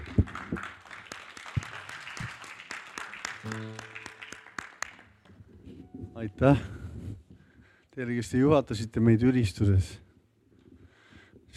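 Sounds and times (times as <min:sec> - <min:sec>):
crowd applauding: 0:00.0 - 0:05.4
brief sung or shouted tone: 0:03.5 - 0:04.5
speech: 0:06.2 - 0:06.8, 0:08.0 - 0:10.0.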